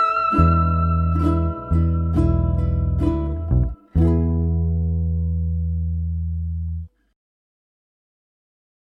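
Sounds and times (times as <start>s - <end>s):
lap steel guitar: 0.0s - 5.9s.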